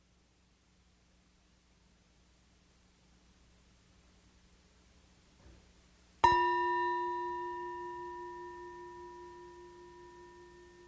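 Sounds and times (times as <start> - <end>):
meditation bell ringing: 6.2 - 10.8.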